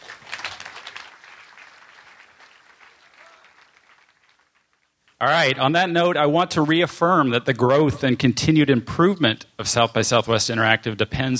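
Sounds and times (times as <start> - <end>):
audience applause: 0.0 - 4.8
speech: 5.2 - 11.3.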